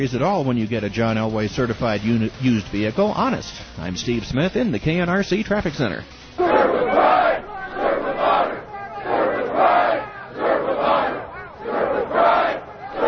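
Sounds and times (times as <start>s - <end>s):
speech: 0.0s - 6.2s
police officers chanting at a protest: 6.4s - 13.0s.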